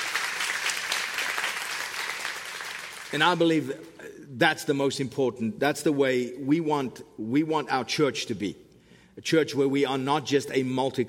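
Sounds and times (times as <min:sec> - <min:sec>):
audience clapping: 0:00.0 - 0:03.6
speech: 0:03.1 - 0:08.6, 0:09.2 - 0:11.0.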